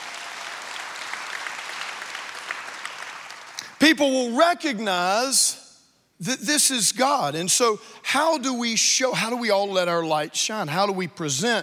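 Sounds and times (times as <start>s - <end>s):
audience applauding: 0.0s - 3.8s
sharp claps: 0.0s - 3.8s
speech: 3.8s - 5.6s, 6.2s - 11.6s.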